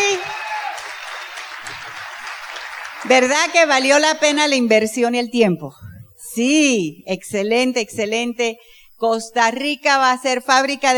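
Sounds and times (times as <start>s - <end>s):
convention audience applauding: 0.0s - 3.7s
speech: 3.1s - 5.8s, 6.4s - 10.9s.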